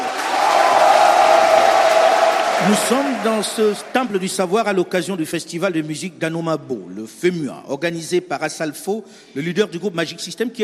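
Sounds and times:
audience cheering at a debate at Félix Houphouët-Boigny University, Abidjan: 0.0 - 4.2
speech: 2.6 - 10.6.

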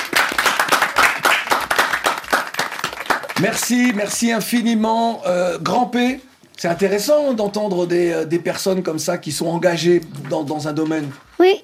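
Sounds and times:
audience applauding: 0.0 - 4.6
speech: 3.4 - 11.6.

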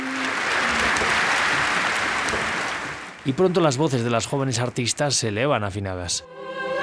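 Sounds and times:
large audience applauding for choir: 0.0 - 5.0
speech: 3.2 - 6.7.

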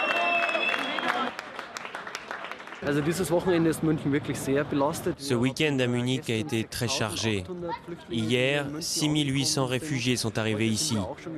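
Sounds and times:
crowd applauding at Munich train station: 0.0 - 3.6
speech: 2.8 - 11.3.

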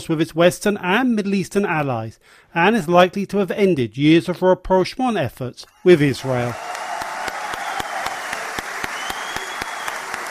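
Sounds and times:
speech: 0.0 - 6.8
parliamentary deputies applauding: 5.9 - 10.2.

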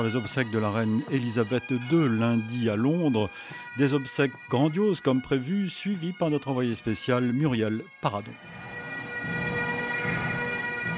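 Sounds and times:
speech: 0.0 - 8.6
bagpipes in funeral procession: 0.0 - 10.9
drums in funeral procession: 8.4 - 10.9.

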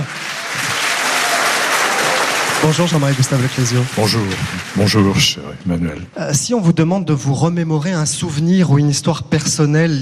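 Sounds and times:
audience applause at the Opéra de Nice: 0.0 - 5.4
speech: 2.6 - 9.9.

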